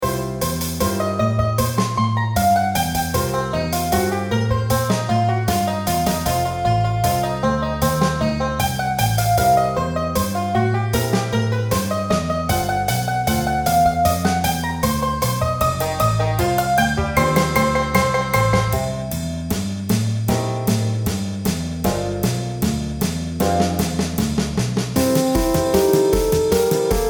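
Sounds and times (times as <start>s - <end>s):
MIDI blues music: 0.0s - 19.3s, 20.0s - 27.0s.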